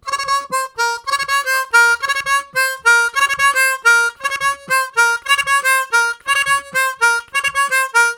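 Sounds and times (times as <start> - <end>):
harmonica riffs in triplets: 0.0 - 8.1.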